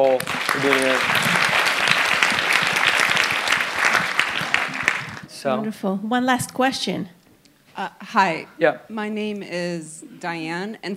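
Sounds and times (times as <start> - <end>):
speech: 0.0 - 1.3, 5.4 - 7.2, 7.8 - 10.9
crowd applauding: 0.0 - 5.3.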